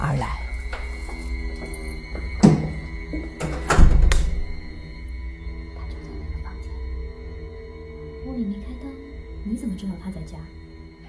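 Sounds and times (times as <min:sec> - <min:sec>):
steady low hum: 0:00.0 - 0:11.0
speech: 0:00.1 - 0:00.4, 0:10.0 - 0:10.6
door being opened into a dark room: 0:02.1 - 0:04.7.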